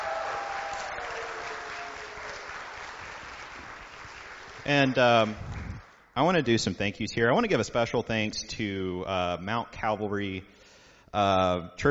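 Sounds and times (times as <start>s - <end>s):
audience applause: 0.0s - 6.1s
speech: 4.7s - 5.5s, 6.2s - 11.8s.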